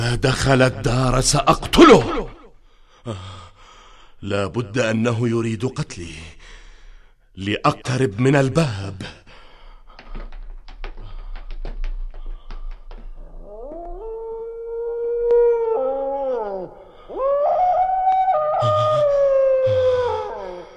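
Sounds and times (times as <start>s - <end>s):
speech: 0.1s - 2.3s, 3.0s - 3.4s, 4.2s - 6.4s, 7.4s - 9.2s
sharp taps: 9.9s - 13.4s
dog howling in long wavering rising tones: 13.2s - 20.7s.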